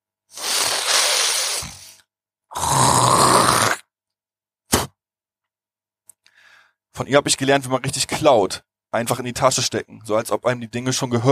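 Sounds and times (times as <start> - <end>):
person hawking up phlegm and spitting: 0.3 - 3.9, 4.7 - 5.0
speech: 7.0 - 11.3.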